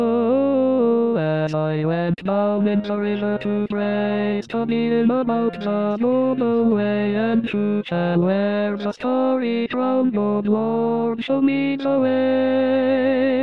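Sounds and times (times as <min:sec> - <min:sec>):
second tenor voice of SATB choir singing: 0:00.0 - 0:13.4.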